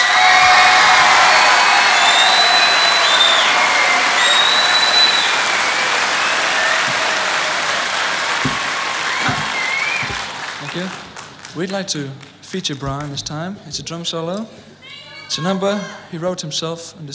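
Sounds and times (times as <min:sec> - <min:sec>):
whistles and cheers: 0:00.0 - 0:11.0
crowd applauding: 0:00.0 - 0:13.1
speech: 0:11.6 - 0:17.1.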